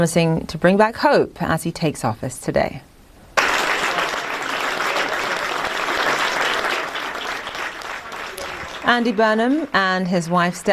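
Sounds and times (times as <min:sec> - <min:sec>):
speech: 0:00.0 - 0:02.9, 0:08.9 - 0:10.7
loud applause: 0:03.4 - 0:10.7.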